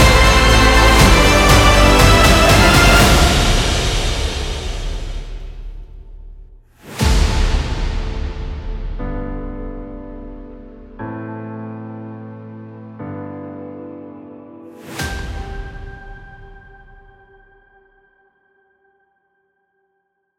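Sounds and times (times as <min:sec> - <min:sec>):
cinematic epic background music: 0:00.0 - 0:11.0, 0:14.7 - 0:17.4.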